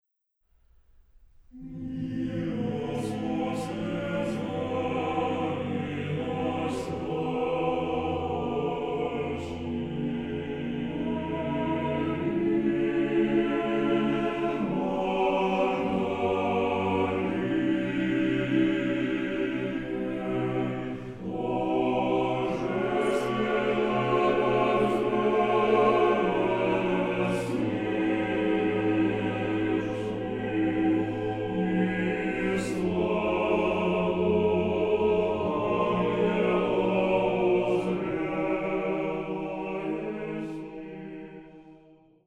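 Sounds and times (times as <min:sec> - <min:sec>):
monastery choir singing: 0:01.5 - 0:42.2.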